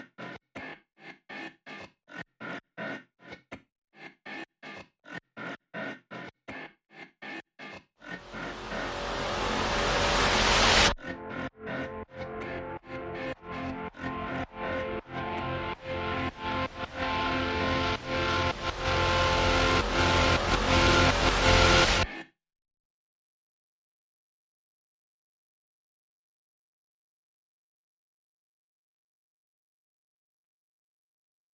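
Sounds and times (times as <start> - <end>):
rising noises: 8.1 - 22.1.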